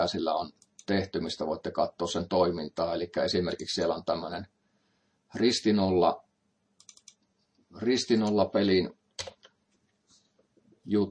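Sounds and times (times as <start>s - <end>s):
speech: 0.0s - 4.6s, 5.3s - 6.2s, 7.7s - 9.4s, 10.9s - 11.0s
computer mouse clicks in a tic-tac-toe example program: 0.5s - 0.9s, 6.8s - 7.3s, 9.2s - 9.6s.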